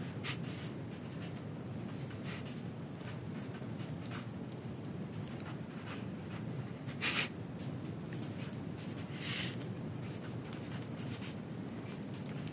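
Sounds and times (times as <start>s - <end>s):
pen scratching across a paper page: 0.0s - 12.5s.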